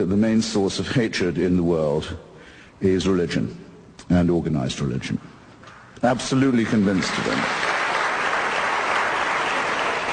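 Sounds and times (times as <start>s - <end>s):
speech: 0.0s - 5.3s, 6.0s - 7.6s
audience applause: 6.5s - 10.1s.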